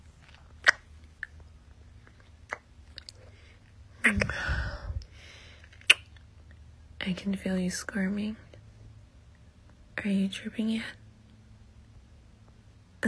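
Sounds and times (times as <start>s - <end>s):
neck kisses with wet lip smacks: 0.2s - 1.4s, 2.0s - 3.3s, 5.6s - 6.3s
speech: 4.1s - 4.6s, 7.0s - 8.4s, 10.0s - 11.0s.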